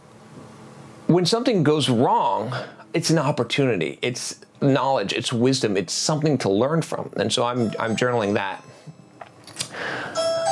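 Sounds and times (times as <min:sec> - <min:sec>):
speech: 0:01.1 - 0:08.8
doorbell ringing: 0:07.6 - 0:09.2, 0:10.0 - 0:10.5.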